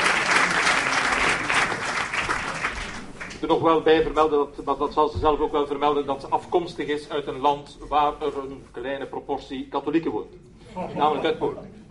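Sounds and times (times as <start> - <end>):
audience applause: 0.0 - 3.5
speech: 3.4 - 11.8.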